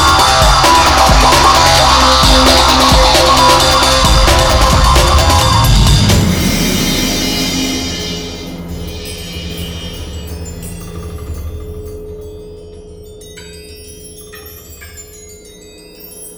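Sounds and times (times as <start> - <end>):
drum and bass music: 0.0 - 11.4.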